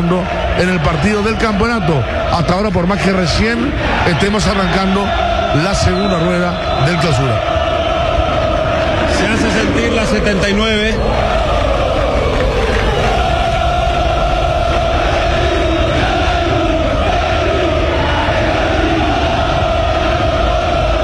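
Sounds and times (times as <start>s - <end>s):
football fans shouting in stadium stands: 0.0s - 21.0s
speech: 0.1s - 7.7s, 9.3s - 11.4s.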